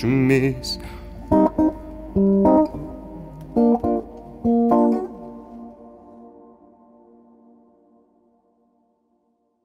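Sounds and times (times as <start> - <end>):
guitar: 0.0 - 8.9.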